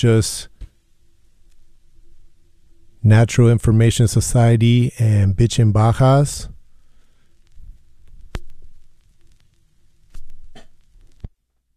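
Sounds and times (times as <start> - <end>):
speech: 0.0 - 0.5, 3.0 - 6.5
vinyl record surface clicking: 7.4 - 11.7.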